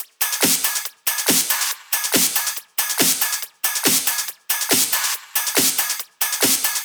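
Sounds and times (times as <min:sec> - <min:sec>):
full drum loop at 140 BPM: 0:00.0 - 0:06.8.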